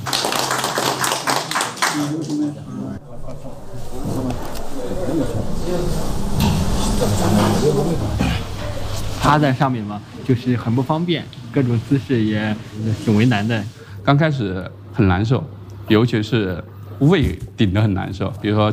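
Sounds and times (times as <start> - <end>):
group clapping: 0.0 - 3.0
murmuring voices: 1.5 - 10.5
speech: 9.3 - 18.7.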